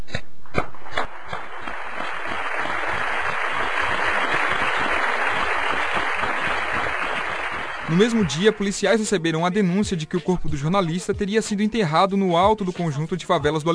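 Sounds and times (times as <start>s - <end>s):
crowd applauding: 0.8s - 9.2s
speech: 7.9s - 13.7s.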